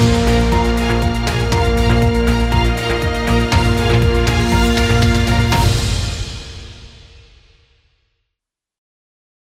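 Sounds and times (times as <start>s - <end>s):
news channel countdown music: 0.0s - 6.4s.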